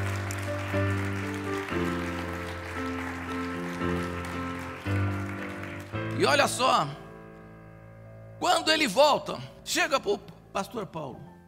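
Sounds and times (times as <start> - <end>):
crowd clapping: 0.0 - 6.6
sustained keyboard chords: 0.0 - 11.4
speech: 0.7 - 1.1, 6.2 - 7.0, 8.4 - 11.3.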